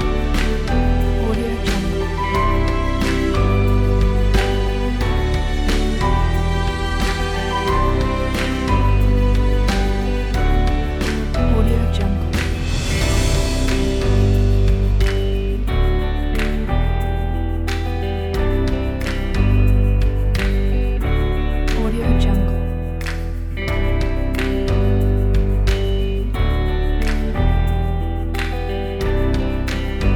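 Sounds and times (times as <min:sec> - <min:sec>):
calm motivational folk music: 0:00.0 - 0:30.1.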